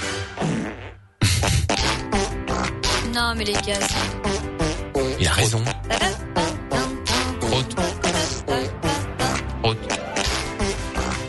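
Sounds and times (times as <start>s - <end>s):
birthday song played with fart sounds: 0.2s - 11.2s
speech: 3.2s - 4.5s, 5.2s - 6.6s.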